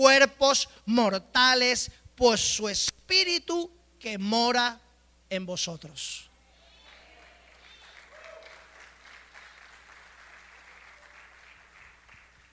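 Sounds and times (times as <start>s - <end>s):
speech: 0.0s - 6.3s
audience applause: 6.9s - 12.5s.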